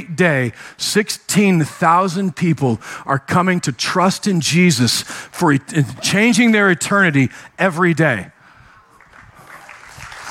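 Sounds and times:
speech: 0.0s - 8.4s
audience applause: 8.9s - 10.3s.

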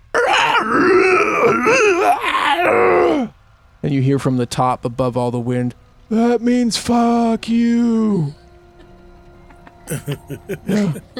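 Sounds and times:
person voicing a demonic scream: 0.1s - 3.3s
speech: 2.0s - 8.4s, 9.9s - 11.1s
laughter: 9.4s - 11.1s.

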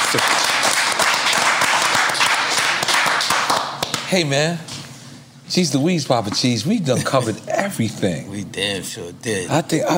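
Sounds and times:
clapping applause: 0.0s - 4.2s
speech: 0.1s - 0.5s, 4.1s - 4.7s, 5.5s - 9.9s.

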